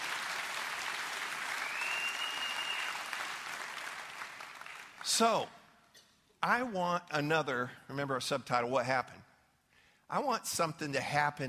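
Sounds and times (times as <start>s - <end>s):
audience applause: 0.0s - 5.1s
brief high whistle: 1.6s - 3.1s
speech: 5.0s - 5.6s, 6.4s - 9.2s, 10.1s - 11.4s.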